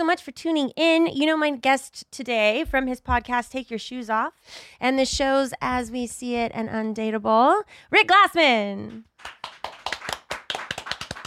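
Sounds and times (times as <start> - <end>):
speech: 0.0 - 9.4
small studio audience applause: 9.2 - 11.2.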